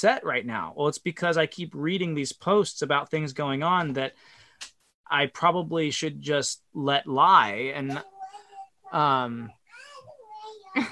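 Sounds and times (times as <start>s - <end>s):
speech: 0.0s - 8.1s, 8.9s - 9.6s, 10.8s - 10.9s
toddler babbling after letting himself out of his room: 7.8s - 10.9s.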